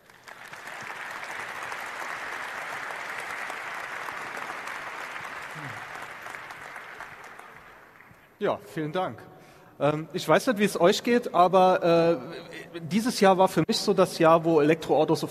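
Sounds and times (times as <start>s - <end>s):
audience applause: 0.0s - 8.3s
speech: 8.4s - 15.2s.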